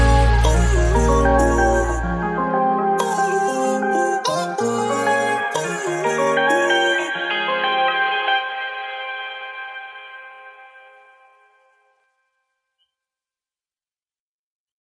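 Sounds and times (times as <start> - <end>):
bass remix music: 0.0 - 8.1.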